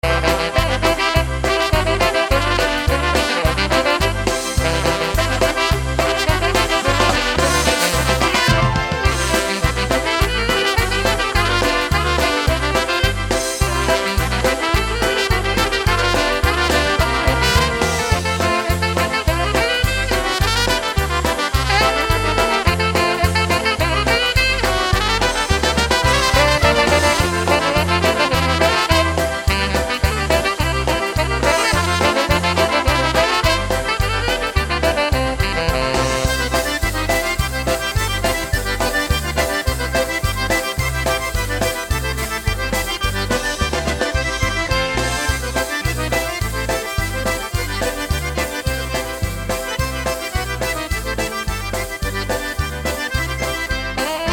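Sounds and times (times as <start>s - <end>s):
polka music: 0.0s - 54.3s.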